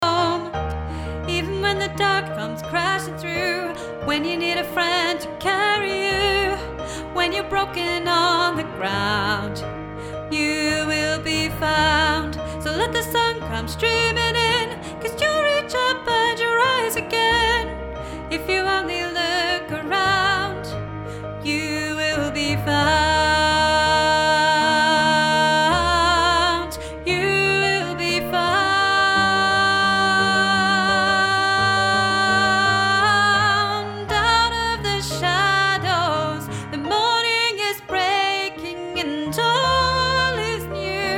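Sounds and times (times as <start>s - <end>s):
mezzo-soprano singing: 0.0s - 41.1s.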